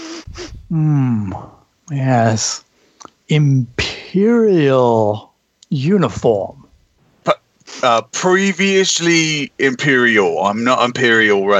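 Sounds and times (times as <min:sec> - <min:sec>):
voice imitating a lion sniffing: 0:00.0 - 0:00.7
speech: 0:00.7 - 0:02.7, 0:03.3 - 0:06.6, 0:07.2 - 0:11.5.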